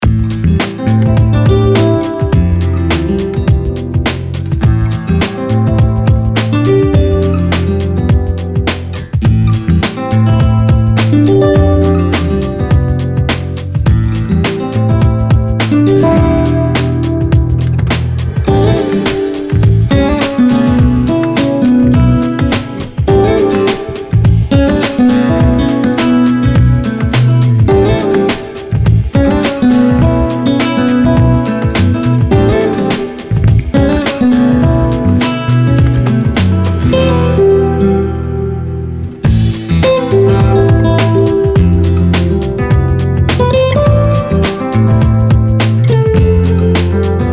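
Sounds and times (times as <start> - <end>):
full music mix: 0.0 - 47.3.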